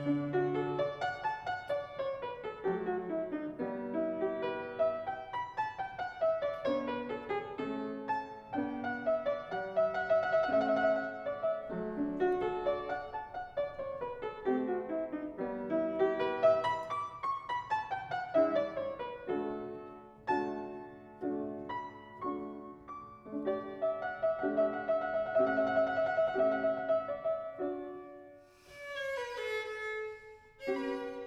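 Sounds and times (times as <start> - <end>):
violin in sonata for violin and piano: 0.0 - 2.1, 28.5 - 31.2
piano in sonata for violin and piano: 0.0 - 31.2.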